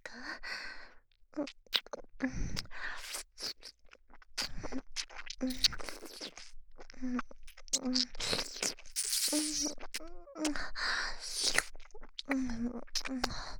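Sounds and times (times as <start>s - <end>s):
ASMR ear licking: 1.5s - 13.4s
sweet ASMR kissing: 1.6s - 2.0s, 4.4s - 6.5s, 7.2s - 10.6s, 11.2s - 12.4s.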